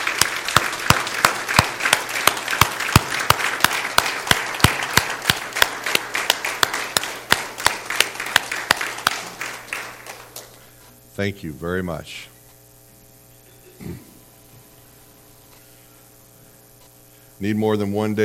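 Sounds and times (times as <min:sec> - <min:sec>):
applause: 0:00.0 - 0:10.7
speech: 0:11.2 - 0:12.3, 0:17.4 - 0:18.2.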